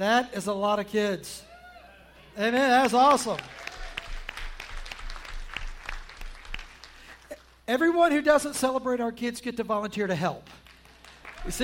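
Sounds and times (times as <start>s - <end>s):
speech: 0.0s - 1.5s, 2.4s - 3.6s, 7.7s - 10.6s, 11.4s - 11.6s
audience applause: 3.0s - 7.5s, 10.7s - 11.6s.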